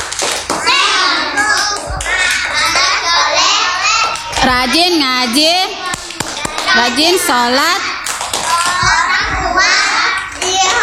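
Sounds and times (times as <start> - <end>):
children clapping along to a chant: 0.0 - 4.6, 5.8 - 10.8
children chanting a religious chant: 0.0 - 10.8
speech: 4.5 - 5.8, 6.8 - 7.9.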